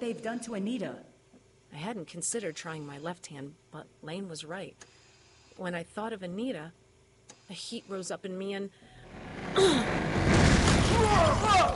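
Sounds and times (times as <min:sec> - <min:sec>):
speech: 0:00.0 - 0:01.1, 0:01.7 - 0:05.0, 0:05.6 - 0:06.8, 0:07.5 - 0:10.2, 0:11.1 - 0:11.7
loud blast of a door blown off its hinges: 0:09.0 - 0:11.7
rumbling roar: 0:09.0 - 0:11.7.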